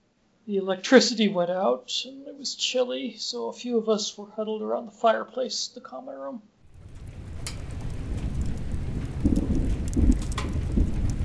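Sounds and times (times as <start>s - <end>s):
speech: 0.5s - 6.5s
thunderstorm with heavy rain: 6.6s - 11.2s.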